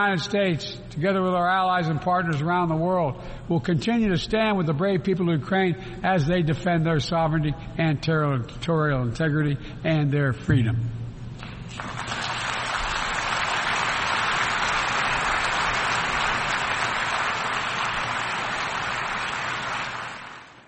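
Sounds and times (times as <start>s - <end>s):
speech: 0.0s - 11.0s
applause at the UN General Assembly: 11.7s - 20.6s.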